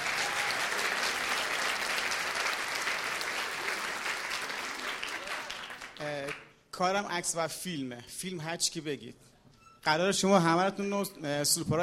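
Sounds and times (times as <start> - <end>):
audience applause: 0.0 - 6.4
speech: 6.0 - 11.8.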